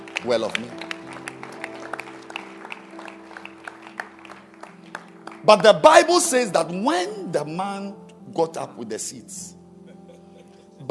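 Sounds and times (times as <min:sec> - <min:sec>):
crowd of people clapping their hands in a steady rhythmic beat: 0:00.0 - 0:06.2
speech: 0:00.2 - 0:00.9, 0:05.4 - 0:09.6.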